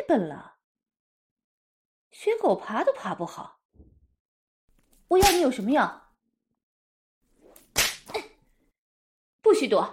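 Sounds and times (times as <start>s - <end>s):
speech: 0.1s - 0.5s, 2.1s - 3.9s, 5.1s - 6.0s, 9.4s - 9.9s
leather whip lashing: 5.2s - 5.6s, 7.6s - 8.3s.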